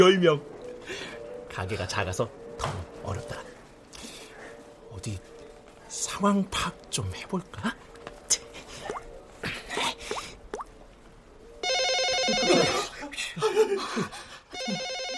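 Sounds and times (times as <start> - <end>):
speech: 0.0 - 3.5, 5.0 - 5.3, 5.9 - 7.8, 13.4 - 14.8
telephone ringing with a trilling electronic bell: 11.6 - 12.9, 14.6 - 15.1
laughter: 12.3 - 15.0.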